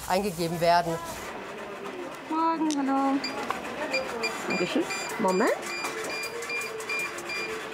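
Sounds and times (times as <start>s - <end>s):
speech: 0.1s - 1.2s, 2.3s - 5.7s
check-in scanner beeping: 3.2s - 7.6s.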